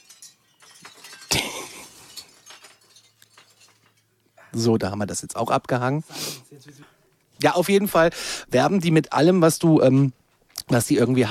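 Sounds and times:
wind chime tinkling: 0:00.0 - 0:04.1
speech: 0:04.5 - 0:11.2.

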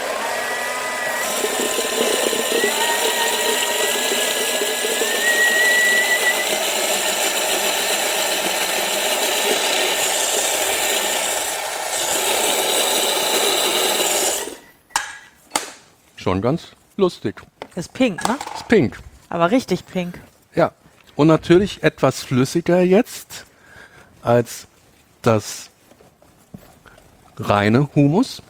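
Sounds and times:
blender mixing beetroot into hummus: 0:00.0 - 0:14.7
speech: 0:16.3 - 0:23.3, 0:24.2 - 0:25.7, 0:27.4 - 0:28.4.

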